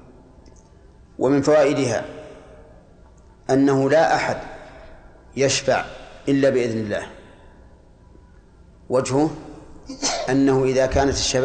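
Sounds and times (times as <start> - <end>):
speech: 1.2 - 2.2, 3.5 - 4.6, 5.3 - 7.2, 8.9 - 11.4
sneeze: 9.9 - 10.4.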